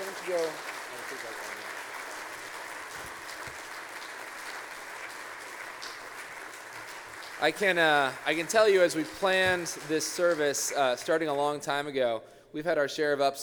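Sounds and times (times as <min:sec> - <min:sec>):
audience applause: 0:00.0 - 0:11.3
speech: 0:00.3 - 0:01.5, 0:07.4 - 0:13.4.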